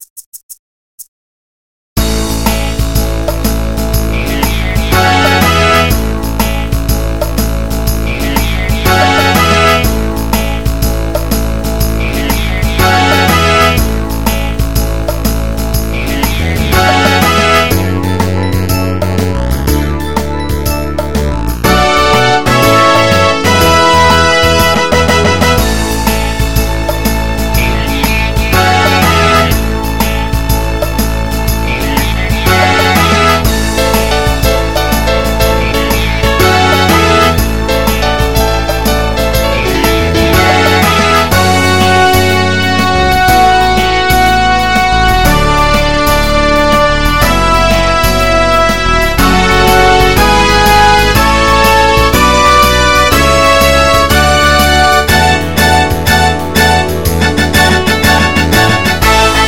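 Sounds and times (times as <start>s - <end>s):
Motown song: 2.1s - 59.4s.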